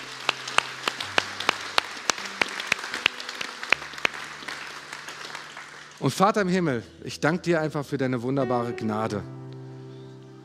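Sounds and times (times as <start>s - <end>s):
scattered applause from a small crowd: 0.0s - 6.5s
speech: 6.0s - 9.4s.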